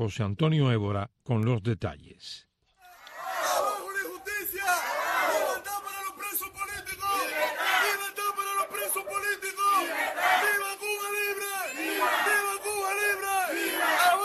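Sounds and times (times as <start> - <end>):
speech: 0.0 - 2.5
protesters shouting at a street demonstration in Cuba: 2.9 - 14.2.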